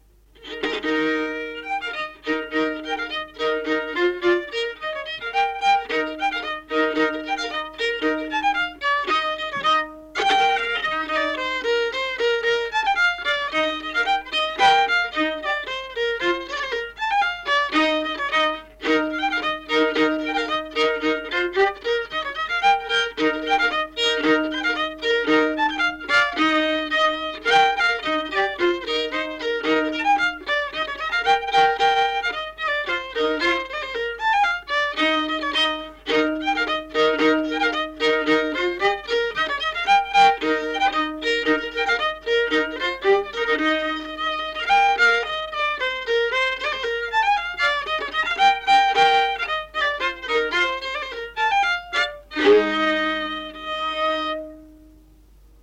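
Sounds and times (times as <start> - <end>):
Ruhnu folk fiddle: 0.0 - 55.6.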